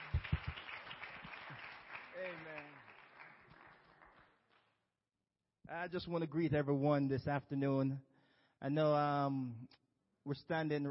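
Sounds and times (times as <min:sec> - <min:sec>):
audience applause: 0:00.0 - 0:04.6
speech: 0:02.2 - 0:02.9, 0:05.7 - 0:10.8.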